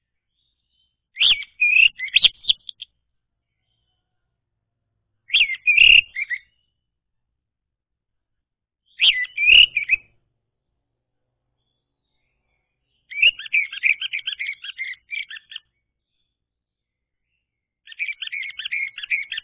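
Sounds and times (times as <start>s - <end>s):
orange-headed thrush whistled song: 0.0s - 4.2s, 5.2s - 6.8s, 8.8s - 10.3s, 11.6s - 19.4s.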